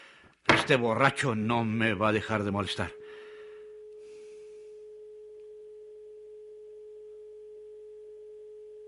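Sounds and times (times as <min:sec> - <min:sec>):
speech: 0:00.7 - 0:03.0
telephone tone from off-hook receiver: 0:02.2 - 0:08.8.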